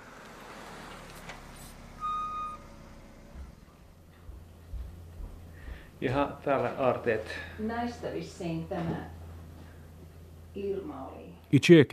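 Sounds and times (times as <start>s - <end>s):
car parking outside a family's house: 0.0s - 11.5s
short high beep tone: 2.0s - 2.6s
soft knocks: 3.3s - 6.0s
speech: 6.0s - 9.2s, 10.6s - 11.9s.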